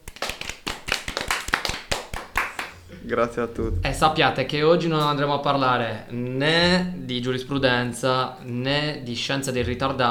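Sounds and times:
applause: 0.0s - 2.8s
speech: 3.0s - 10.1s.

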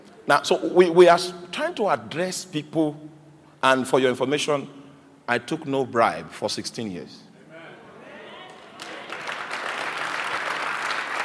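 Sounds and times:
speech: 0.3s - 7.3s
audience clapping: 8.5s - 11.2s.

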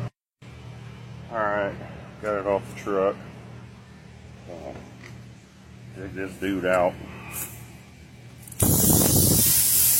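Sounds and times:
speech: 1.3s - 3.3s, 4.5s - 4.9s, 6.0s - 7.5s
air hissing from a leaking punctured tire: 8.5s - 9.9s.

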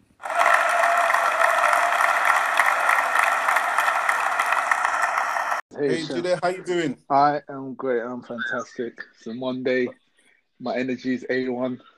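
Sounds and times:
audience applause: 0.0s - 5.6s
speech: 5.8s - 10.0s, 10.6s - 11.9s.

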